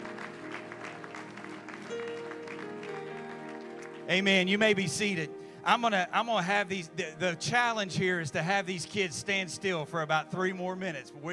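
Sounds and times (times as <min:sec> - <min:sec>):
audience clapping: 0:00.0 - 0:04.8
speech: 0:04.1 - 0:11.3.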